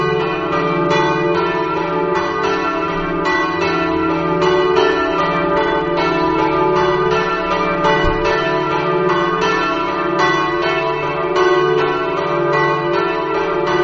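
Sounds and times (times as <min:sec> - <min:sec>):
church bells in Cussignacco: 0:00.0 - 0:13.8.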